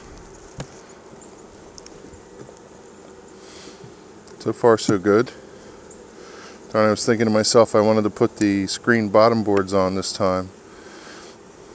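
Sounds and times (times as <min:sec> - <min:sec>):
honeybees buzzing around an open hive: 0:00.0 - 0:11.7
speech: 0:04.4 - 0:05.4, 0:06.8 - 0:10.6.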